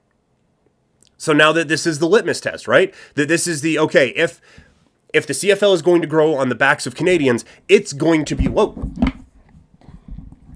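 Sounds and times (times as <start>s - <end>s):
speech: 1.2s - 9.2s
microphone knocked over by a cat: 8.3s - 10.5s.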